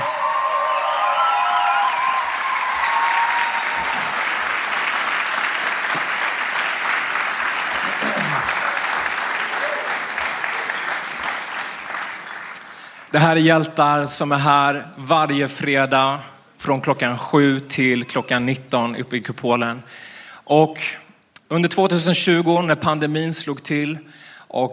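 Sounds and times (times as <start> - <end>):
audience applauding: 0.0 - 13.2
speech: 13.2 - 24.7.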